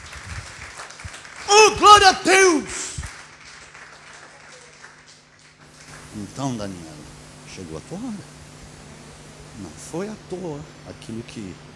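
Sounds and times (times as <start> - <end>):
faint congregation applause during a church sermon: 0.0 - 10.0
low steady hum: 5.7 - 10.2
speech: 6.4 - 7.0, 7.6 - 8.4, 9.6 - 11.7.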